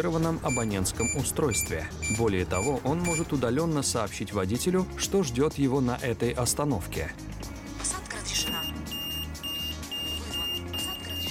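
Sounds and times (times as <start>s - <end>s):
speech: 0.0s - 7.5s
audible beacon beeping at tram door: 0.5s - 3.3s, 8.5s - 11.2s.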